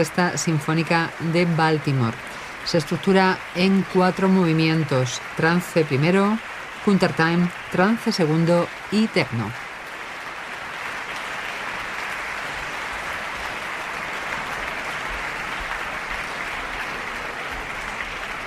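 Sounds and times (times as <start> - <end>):
speech: 0.0 - 9.6
concert audience applause: 0.0 - 18.4.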